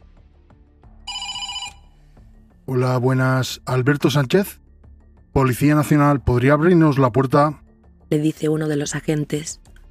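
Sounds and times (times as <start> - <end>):
intercom doorbell electronic ring: 1.1 - 1.8
speech: 2.7 - 4.6, 5.4 - 9.7.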